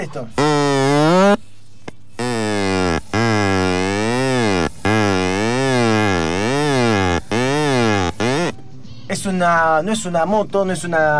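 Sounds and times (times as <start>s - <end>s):
speech: 0.0s - 1.4s, 9.2s - 11.1s
straw flute made of two drinking straws: 0.2s - 1.5s, 2.1s - 8.6s.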